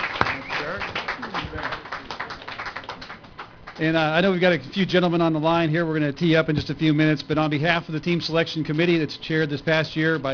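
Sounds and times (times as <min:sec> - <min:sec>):
audience applause: 0:00.0 - 0:03.8
speech: 0:03.8 - 0:10.3.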